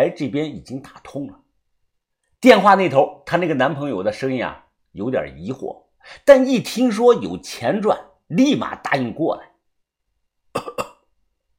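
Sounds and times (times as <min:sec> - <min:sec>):
speech: 0:00.0 - 0:01.4, 0:02.4 - 0:09.5
man coughing: 0:10.6 - 0:11.1.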